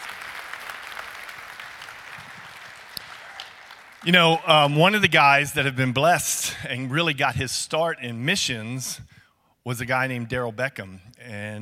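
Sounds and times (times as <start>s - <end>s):
audience applause: 0.0s - 4.8s
speech: 4.0s - 11.6s.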